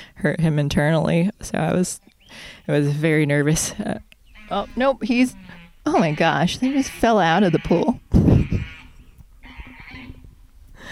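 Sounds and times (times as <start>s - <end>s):
speech: 0.2s - 8.5s
male goose honking: 4.3s - 10.2s.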